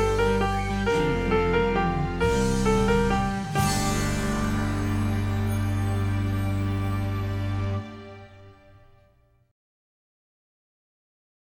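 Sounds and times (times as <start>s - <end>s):
bells playing a carol: 0.2s - 8.2s.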